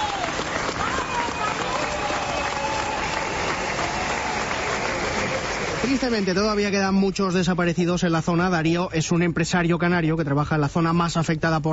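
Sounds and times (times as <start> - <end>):
people spontaneously applauding firefighters: 0.0 - 6.8
speech: 5.8 - 11.7.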